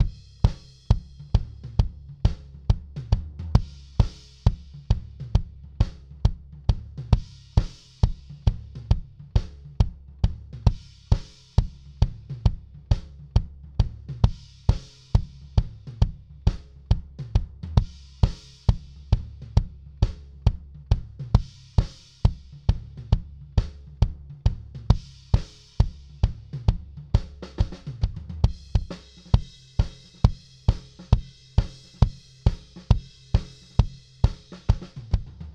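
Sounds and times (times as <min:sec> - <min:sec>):
kick drum: 0:00.0 - 0:35.5.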